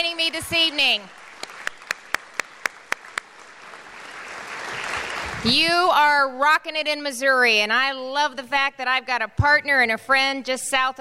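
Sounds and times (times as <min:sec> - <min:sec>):
speech: 0:00.0 - 0:01.2, 0:05.4 - 0:10.9
audience applause: 0:00.1 - 0:05.5.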